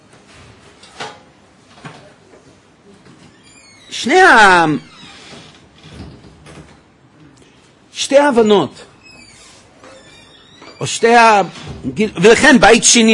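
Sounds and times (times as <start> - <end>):
creaking door being closed: 3.2 - 6.9, 8.9 - 12.0
speech: 4.0 - 5.0, 8.1 - 8.9, 10.8 - 13.1.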